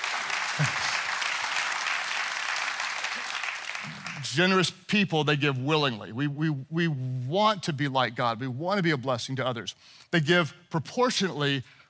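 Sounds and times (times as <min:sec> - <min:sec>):
audience clapping: 0:00.0 - 0:04.6
speech: 0:04.2 - 0:11.8.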